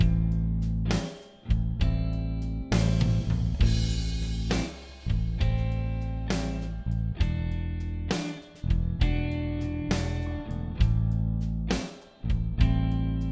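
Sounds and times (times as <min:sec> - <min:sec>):
dorian backing track: 0:00.0 - 0:13.2.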